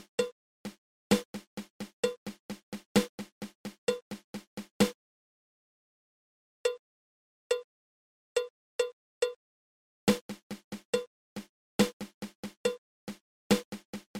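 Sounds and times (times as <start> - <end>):
triple paradiddle drum rudiment: 0.0 - 5.0, 10.1 - 14.1.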